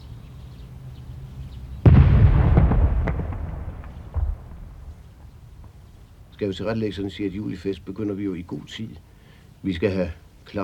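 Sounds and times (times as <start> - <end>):
cannon salute shot fired for the July festival: 1.8 - 5.3
speech: 6.4 - 10.6.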